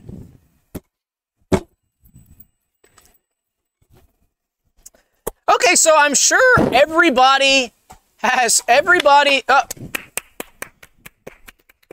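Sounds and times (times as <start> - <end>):
speech: 5.7 - 9.9
sharp hand claps: 8.9 - 11.9.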